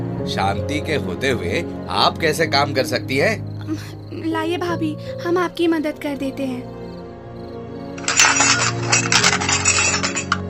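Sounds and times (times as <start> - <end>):
speech: 0.2 - 6.8
metal utensil falling and clattering: 8.0 - 10.4.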